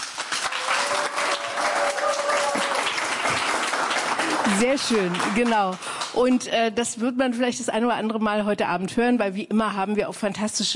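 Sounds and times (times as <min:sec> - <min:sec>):
studio audience clapping hands: 0:00.0 - 0:06.6
speech: 0:04.5 - 0:10.7.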